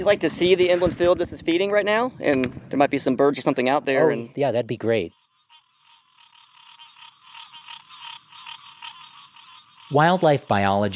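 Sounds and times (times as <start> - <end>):
speech: 0.0 - 5.2, 9.9 - 10.9
chorus of green tree frogs calling: 3.8 - 10.9.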